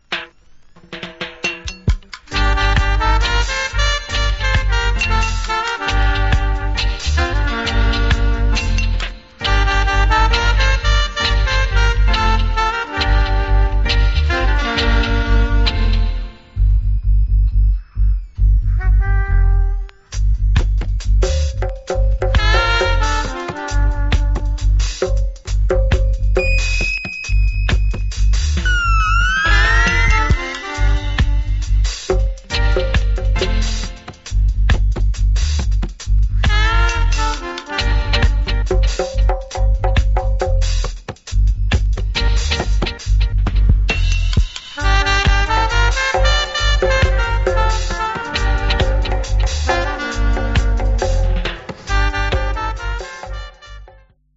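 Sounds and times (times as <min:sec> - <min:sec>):
roots dub music: 0:00.0 - 0:53.8.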